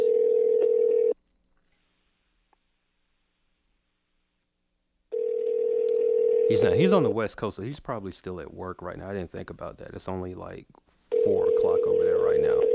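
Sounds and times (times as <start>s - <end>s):
ringback tone of an outgoing phone call: 0.0s - 1.2s, 5.1s - 7.0s, 11.1s - 12.7s
speech: 6.5s - 12.7s.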